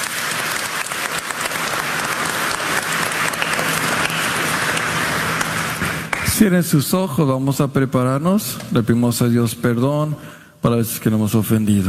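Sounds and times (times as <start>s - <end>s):
audience applause: 0.0s - 6.4s
speech: 6.4s - 11.8s.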